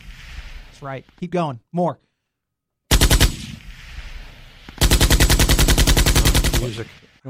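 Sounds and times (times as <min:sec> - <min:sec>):
speech: 0:00.8 - 0:02.1, 0:06.6 - 0:07.2
M60 machine gun firing bursts: 0:02.9 - 0:03.6, 0:04.8 - 0:07.1.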